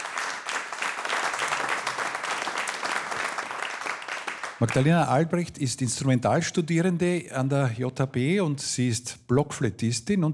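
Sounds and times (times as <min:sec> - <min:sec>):
audience applause: 0:00.0 - 0:04.9
speech: 0:04.6 - 0:10.3.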